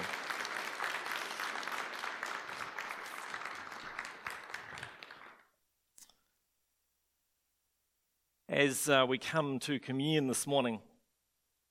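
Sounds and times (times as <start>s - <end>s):
crowd clapping: 0.0s - 5.6s
speech: 8.5s - 10.9s.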